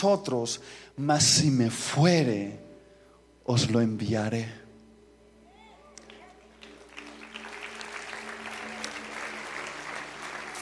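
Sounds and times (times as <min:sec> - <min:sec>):
speech: 0:00.0 - 0:02.6, 0:03.5 - 0:04.6
audience clapping: 0:06.0 - 0:10.5.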